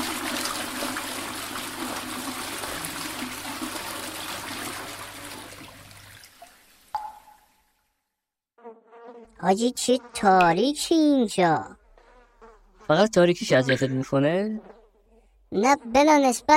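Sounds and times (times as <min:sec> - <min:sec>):
toilet flushing: 0:00.0 - 0:06.9
speech: 0:09.4 - 0:11.8, 0:12.9 - 0:14.8, 0:15.5 - 0:16.5.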